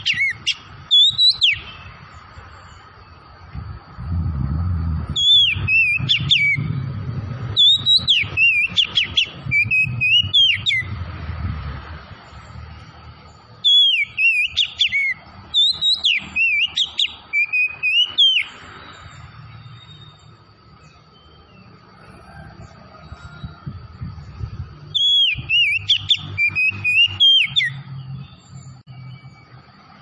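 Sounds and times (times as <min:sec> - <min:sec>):
Oriental magpie-robin singing whistled phrases: 0:00.0 - 0:02.9, 0:05.0 - 0:11.0, 0:12.4 - 0:21.8, 0:22.6 - 0:29.6
low background rumble: 0:03.4 - 0:13.5.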